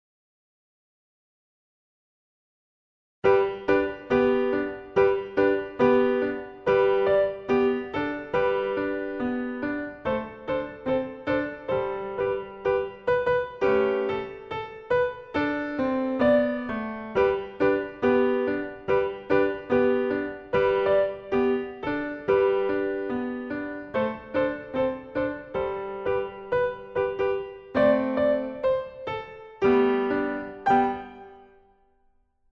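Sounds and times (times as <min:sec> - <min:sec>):
Christmas song: 0:03.3 - 0:31.6.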